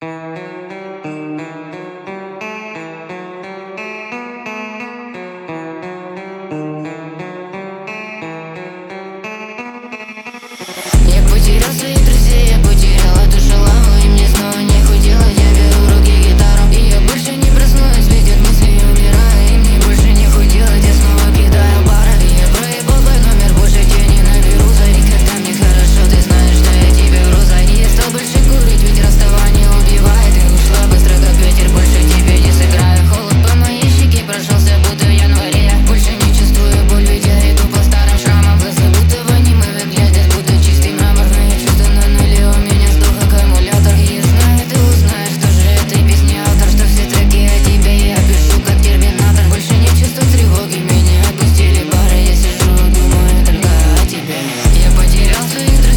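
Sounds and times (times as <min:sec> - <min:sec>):
guitar: 0:00.0 - 0:55.9.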